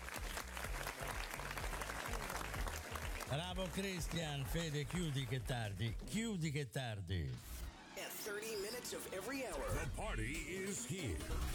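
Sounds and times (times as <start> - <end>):
audience applause: 0.0 - 6.0
speech: 3.3 - 11.5.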